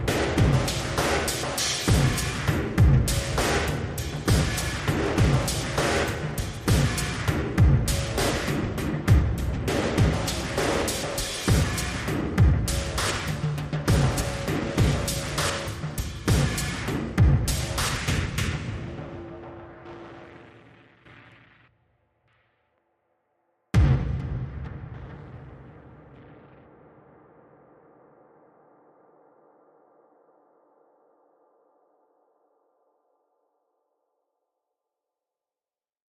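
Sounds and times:
drums: 0:00.0 - 0:22.4, 0:23.8 - 0:27.3.

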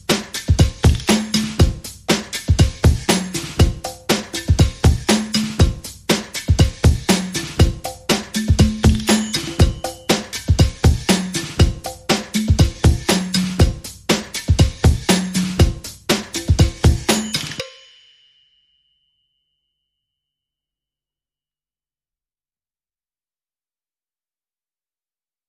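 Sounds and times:
rhythm track: 0:00.0 - 0:17.8.

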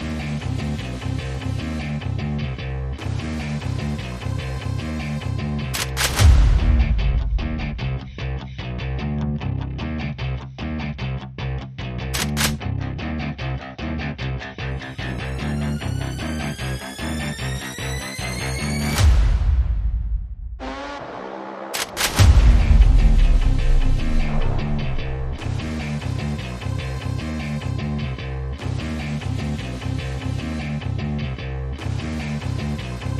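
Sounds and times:
guitars: 0:00.0 - 0:19.0, 0:22.1 - 0:33.1
sound effects: 0:14.9 - 0:26.2.

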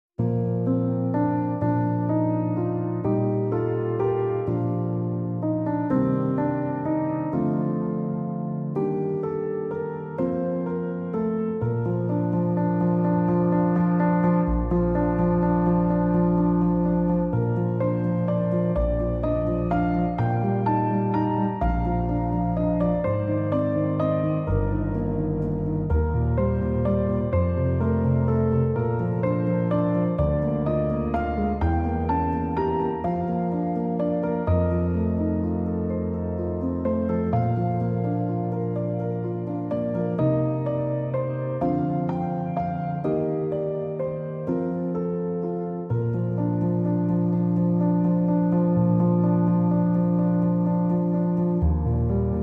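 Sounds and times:
solo piano: 0:00.2 - 0:52.4.

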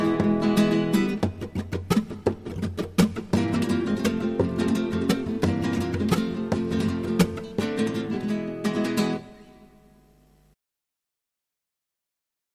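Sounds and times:
sevillana flamenco music: 0:00.0 - 0:09.8.

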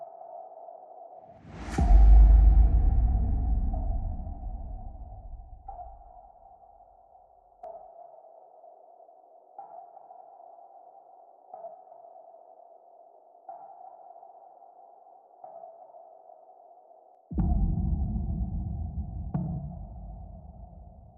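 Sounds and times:
drums: 0:01.3 - 0:06.2, 0:17.3 - 0:21.1
sound effect hits: 0:01.4 - 0:06.1.

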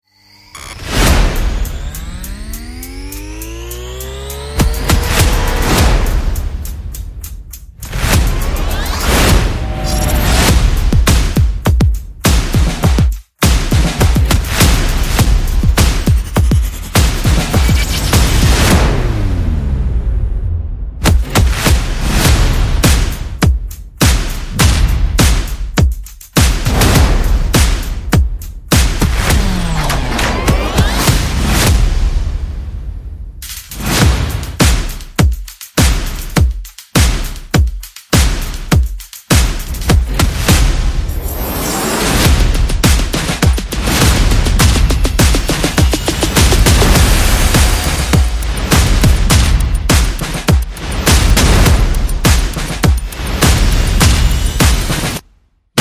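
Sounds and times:
sound effects: 0:00.0 - 0:11.4, 0:14.2 - 0:22.8, 0:28.7 - 0:32.4, 0:40.2 - 0:55.2
percussion: 0:00.0 - 0:19.7, 0:21.0 - 0:55.7.

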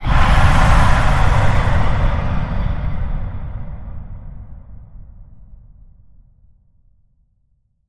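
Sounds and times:
dragon breathing fire: 0:00.0 - 0:04.8.

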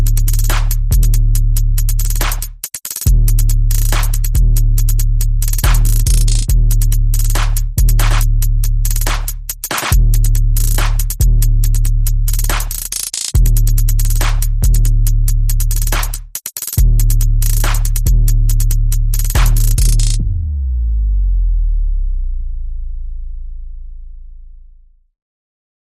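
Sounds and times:
percussion: 0:00.0 - 0:20.2
bass: 0:00.0 - 0:25.2.

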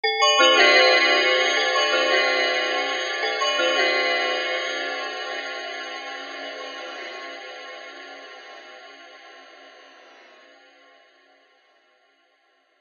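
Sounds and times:
multiple bells ringing: 0:00.0 - 0:09.0.

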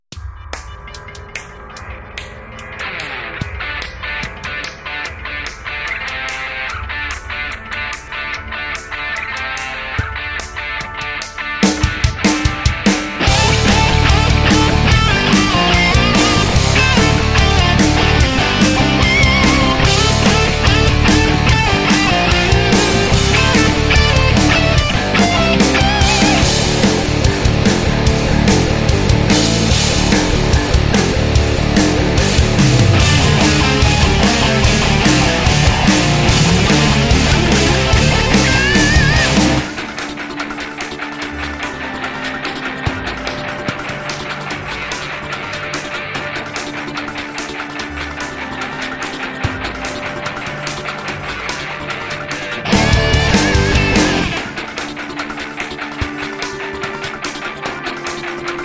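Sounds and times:
energetic frenetic music: 0:00.0 - 0:58.6.

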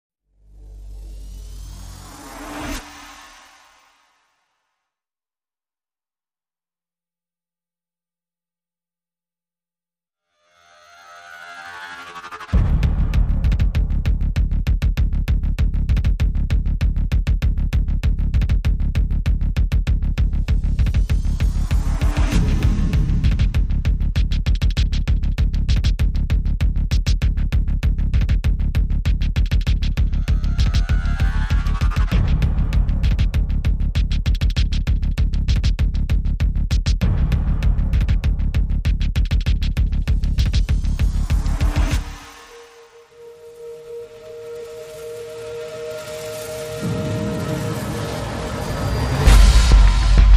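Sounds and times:
sound effects: 0:00.4 - 0:04.6, 0:10.3 - 0:13.8, 0:20.3 - 0:23.6, 0:30.0 - 0:32.8, 0:40.2 - 0:50.3
drums: 0:12.2 - 0:42.7, 0:46.2 - 0:50.3.

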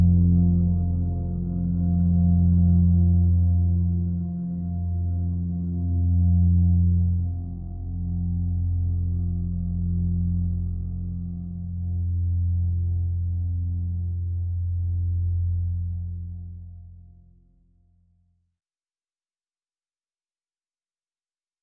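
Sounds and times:
drone in F: 0:00.0 - 0:17.1.

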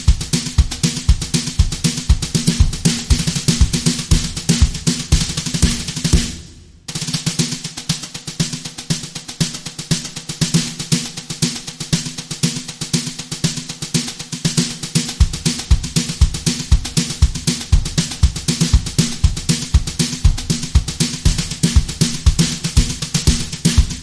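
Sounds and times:
kick drum: 0:00.0 - 0:07.0, 0:15.2 - 0:24.0
drum brushes: 0:00.0 - 0:24.0.

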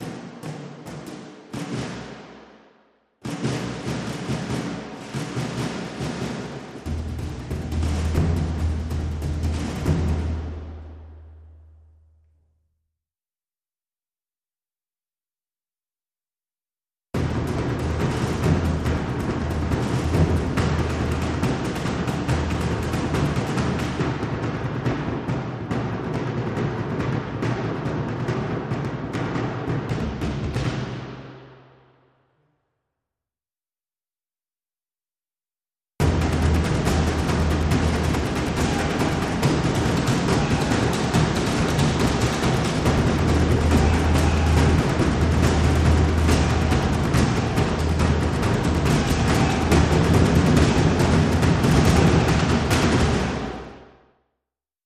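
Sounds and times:
dhol drum ensemble loop layer: 0:00.0 - 0:02.5, 0:03.2 - 0:11.3, 0:17.2 - 0:31.4, 0:36.0 - 0:53.8.

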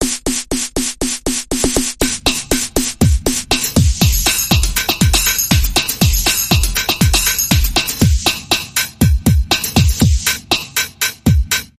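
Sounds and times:
club dance bumper jingle: 0:01.7 - 0:11.7.

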